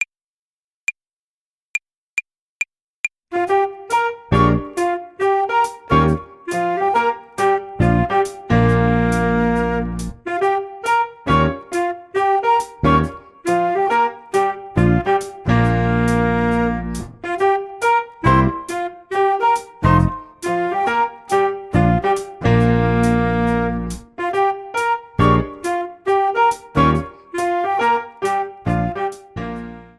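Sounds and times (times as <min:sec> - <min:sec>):
jazz club drums play-along: 0:03.3 - 0:29.8.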